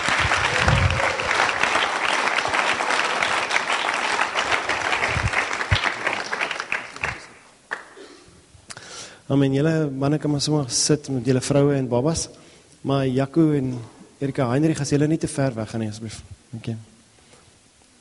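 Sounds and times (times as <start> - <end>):
audience applauding: 0.0 - 8.0
speech: 9.3 - 16.9.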